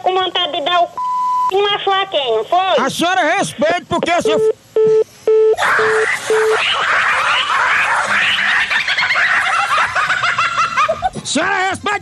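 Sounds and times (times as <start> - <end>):
speech: 0.3 - 5.0, 5.8 - 7.1, 11.3 - 11.9
telephone beeps after a dropped call: 1.0 - 1.5, 4.2 - 6.6
laughter: 5.6 - 11.3.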